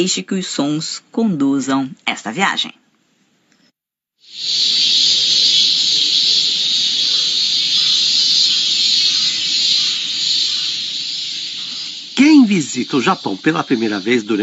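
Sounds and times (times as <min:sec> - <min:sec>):
speech: 0:00.0 - 0:02.8, 0:04.4 - 0:04.8, 0:12.4 - 0:14.4
cicadas in Japanese summer: 0:04.2 - 0:14.4.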